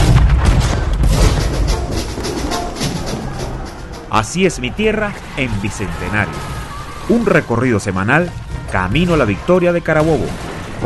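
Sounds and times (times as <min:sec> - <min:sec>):
cannon fire: 0:00.0 - 0:03.2
speech: 0:04.2 - 0:10.8.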